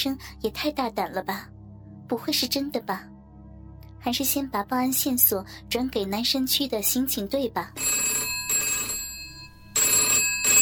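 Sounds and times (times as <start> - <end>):
speech: 0.0 - 3.1, 4.0 - 8.3
telephone ringing: 7.8 - 10.5.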